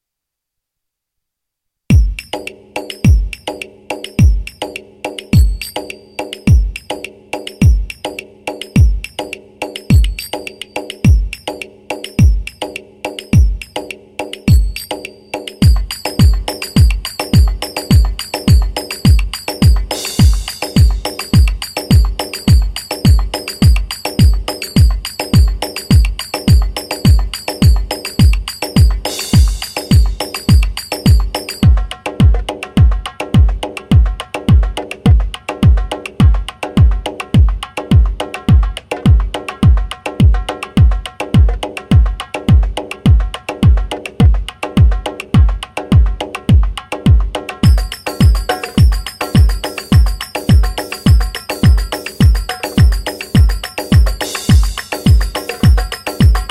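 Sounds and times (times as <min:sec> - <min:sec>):
2-4 drum rhythm: 0:01.9 - 0:56.5.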